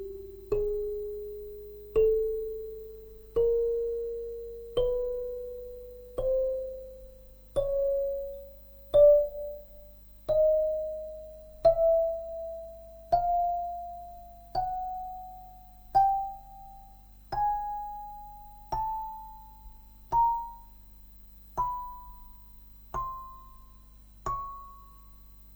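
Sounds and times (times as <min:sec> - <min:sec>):
kalimba playing a scale: 0:00.0 - 0:20.8, 0:21.6 - 0:25.0.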